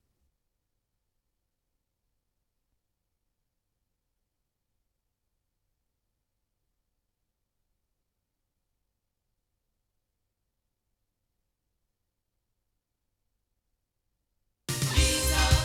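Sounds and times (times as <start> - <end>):
loudspeakers: 14.7 - 15.6.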